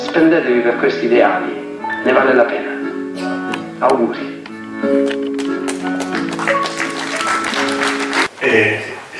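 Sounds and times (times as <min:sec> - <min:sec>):
speech: 0:00.2 - 0:02.7, 0:03.8 - 0:04.3, 0:08.5 - 0:08.9
applause for a performer: 0:05.1 - 0:08.3.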